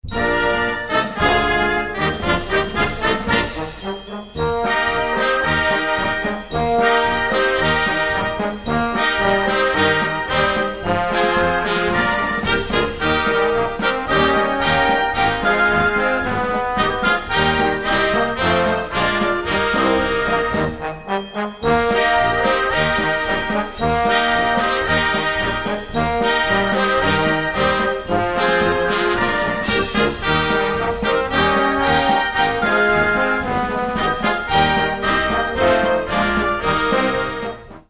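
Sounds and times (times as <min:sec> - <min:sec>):
happy marching band playing: 0:00.0 - 0:37.8.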